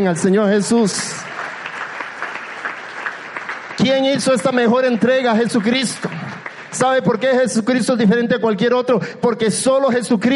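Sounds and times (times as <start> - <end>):
speech: 0.0 - 1.4, 3.8 - 10.3
audience applause: 0.6 - 7.4.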